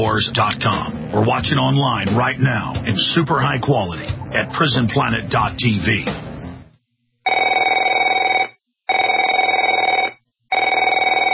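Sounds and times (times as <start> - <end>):
speech: 0.0 - 6.2
telephone ringing with electronic trill: 7.3 - 11.3.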